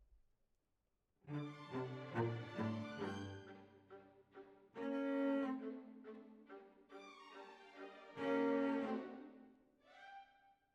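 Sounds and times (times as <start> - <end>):
cellos playing: 1.3 - 6.8, 7.4 - 9.4.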